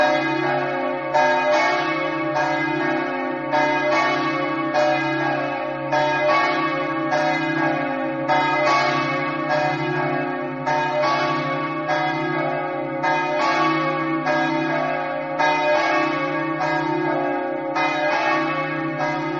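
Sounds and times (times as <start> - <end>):
bells ringing in Fiumicello: 0.0 - 19.3.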